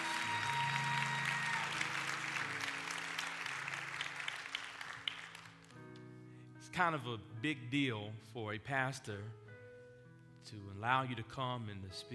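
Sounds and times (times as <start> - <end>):
audience applause: 0.0 - 5.8
speech: 6.8 - 9.4, 10.4 - 12.1.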